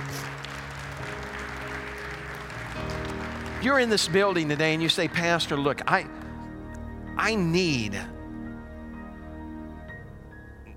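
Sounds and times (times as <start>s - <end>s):
audience clapping hands in praise: 0.0s - 6.5s
speech: 3.6s - 6.2s, 7.2s - 8.2s.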